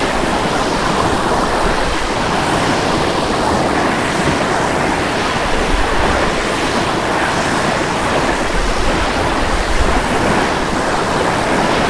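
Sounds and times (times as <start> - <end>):
waves: 0.0 - 11.8.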